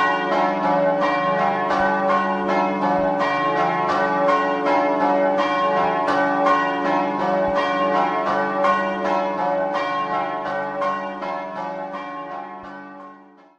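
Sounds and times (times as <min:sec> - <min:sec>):
bells ringing: 0:00.0 - 0:13.3.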